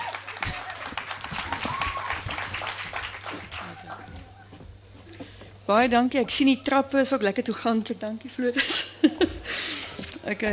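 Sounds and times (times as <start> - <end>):
audience applause: 0.0 - 4.3
speech: 5.7 - 9.3, 10.3 - 10.5.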